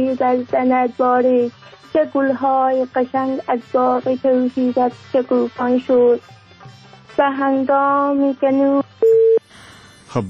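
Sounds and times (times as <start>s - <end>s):
speech: 0.0s - 8.9s
telephone line tones after a dropped call: 9.0s - 9.4s.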